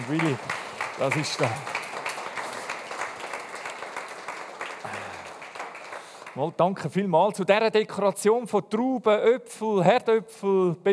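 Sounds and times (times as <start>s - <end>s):
audience applause: 0.0s - 6.4s
speech: 0.1s - 1.8s, 6.4s - 10.9s.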